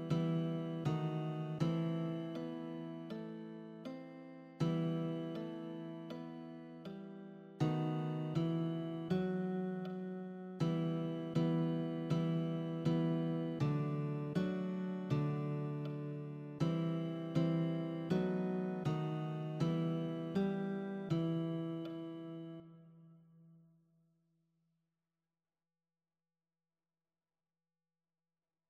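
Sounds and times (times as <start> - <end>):
guitar: 0.0 - 22.8.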